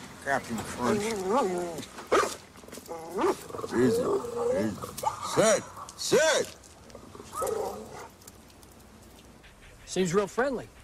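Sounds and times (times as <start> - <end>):
speech: 0.2 - 2.2, 2.9 - 6.6, 10.0 - 10.8
dog growling: 2.9 - 5.9, 6.9 - 8.2.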